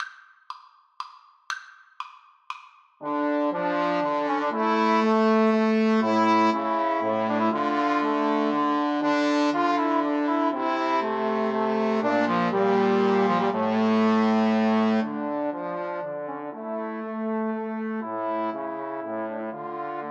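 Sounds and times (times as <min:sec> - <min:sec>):
trombone trio: 0:03.0 - 0:20.0.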